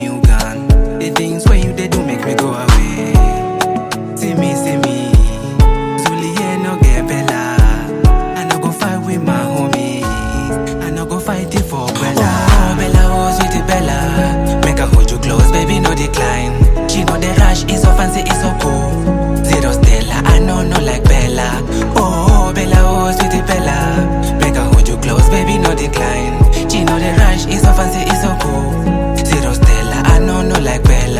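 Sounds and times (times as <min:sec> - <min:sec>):
melodic instrumental: 0:00.0 - 0:31.1.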